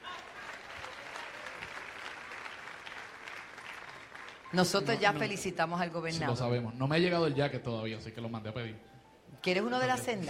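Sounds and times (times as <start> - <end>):
applause for the rescuer: 0.0 - 5.4
speech: 4.5 - 10.2.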